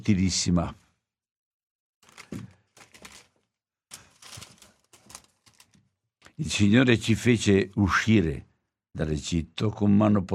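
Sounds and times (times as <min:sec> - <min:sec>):
speech: 0:00.0 - 0:00.8, 0:06.4 - 0:10.3
thin book page turning: 0:02.0 - 0:05.8.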